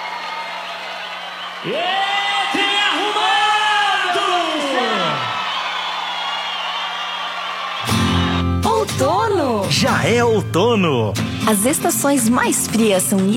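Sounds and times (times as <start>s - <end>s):
voices whooping in long rising and falling cries: 0.0s - 8.7s
crowd clapping and cheering: 0.0s - 9.7s
speech: 1.6s - 2.0s, 10.0s - 13.3s.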